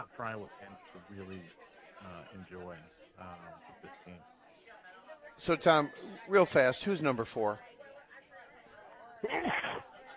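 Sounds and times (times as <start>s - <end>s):
speech: 0.0s - 4.4s, 5.2s - 7.8s, 9.2s - 9.9s
low steady murmur: 0.0s - 10.1s
sneeze: 9.2s - 9.9s.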